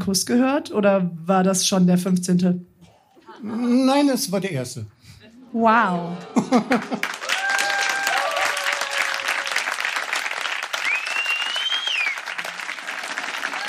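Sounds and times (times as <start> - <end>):
speech: 0.0 - 2.7, 3.4 - 7.2
laughter: 3.1 - 4.1, 5.2 - 7.5
audience applause: 6.4 - 13.6.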